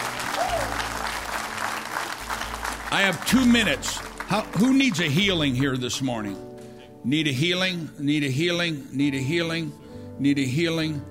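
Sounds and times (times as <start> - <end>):
audience clapping: 0.0 - 6.0
speech: 2.9 - 11.0.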